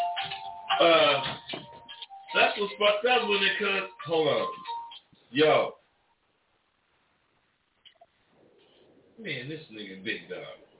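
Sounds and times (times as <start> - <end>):
phone electronic ringtone: 0.0 - 5.0
speech: 0.8 - 1.4, 2.3 - 4.6, 5.3 - 5.8, 9.2 - 10.6.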